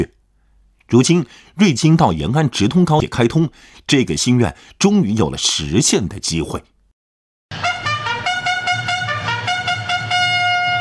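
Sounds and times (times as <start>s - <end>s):
speech: 0.9s - 6.7s
loud military bugle call: 7.5s - 10.7s.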